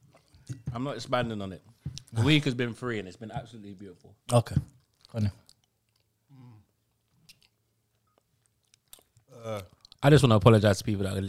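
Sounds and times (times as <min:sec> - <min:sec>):
speech: 0:00.7 - 0:05.4, 0:09.5 - 0:11.2
open-mouthed chewing of food: 0:04.8 - 0:10.0.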